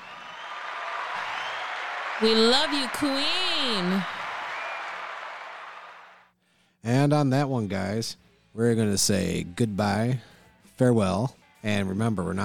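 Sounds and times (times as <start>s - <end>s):
audience applause: 0.0s - 6.2s
speech: 2.2s - 4.2s, 6.8s - 12.4s.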